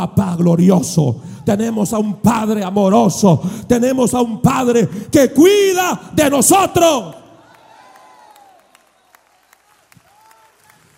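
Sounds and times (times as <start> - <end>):
speech: 0.0 - 7.2
audience applause: 7.4 - 10.9.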